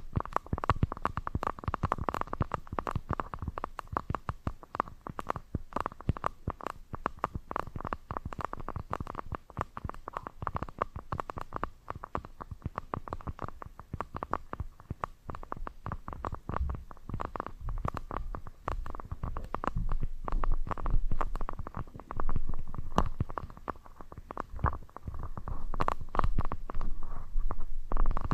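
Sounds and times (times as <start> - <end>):
scratching and tapping: 0.0 - 28.3
midrange hum: 15.7 - 28.3.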